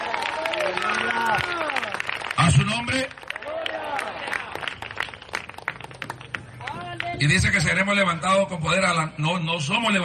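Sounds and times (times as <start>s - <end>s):
few people applauding: 0.0s - 7.2s
speech: 2.5s - 3.2s, 7.2s - 10.0s.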